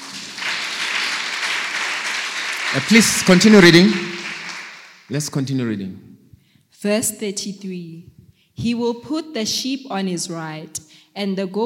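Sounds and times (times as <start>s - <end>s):
church congregation clapping in praise during a service: 0.0s - 5.4s
speech: 2.7s - 4.1s, 5.1s - 6.1s, 6.8s - 11.6s.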